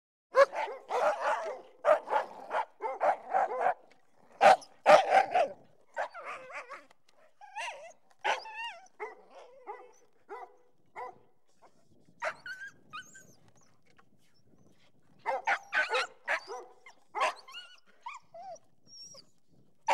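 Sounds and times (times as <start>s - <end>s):
dog barking: 0.3s - 3.8s, 4.4s - 6.8s, 8.2s - 8.4s, 9.0s - 11.2s, 15.2s - 17.5s.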